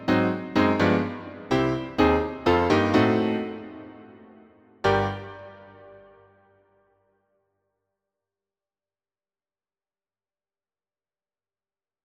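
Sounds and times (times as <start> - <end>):
piano: 0.0 - 6.6.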